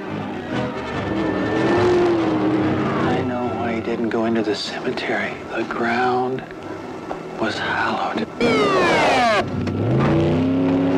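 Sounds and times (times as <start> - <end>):
car engine roaring: 0.0 - 3.8, 8.4 - 10.9
tires screeching in a skid: 0.0 - 3.8, 8.4 - 10.9
speech: 4.4 - 6.6, 7.4 - 9.3.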